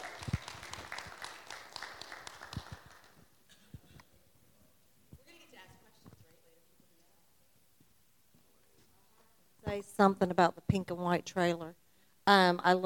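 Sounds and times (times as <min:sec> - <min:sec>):
small audience clapping: 0:00.0 - 0:03.3
speech: 0:09.7 - 0:12.8.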